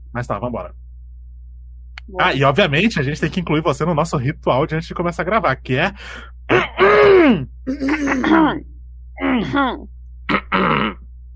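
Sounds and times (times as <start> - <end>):
speech: 0.1 - 0.8, 2.1 - 9.9, 10.5 - 11.0
throat clearing: 6.5 - 8.5, 10.3 - 11.0.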